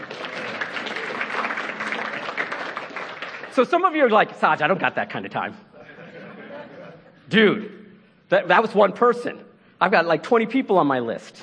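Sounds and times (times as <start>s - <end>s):
audience applause welcoming a guest after a prayer: 0.0s - 4.1s
speech: 3.6s - 5.7s, 7.3s - 11.4s
laughter: 5.7s - 7.4s.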